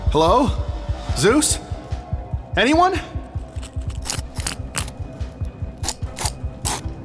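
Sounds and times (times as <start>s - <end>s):
speech: 0.1s - 1.7s, 2.5s - 3.2s
flint pieces struck together clicking: 3.3s - 6.9s.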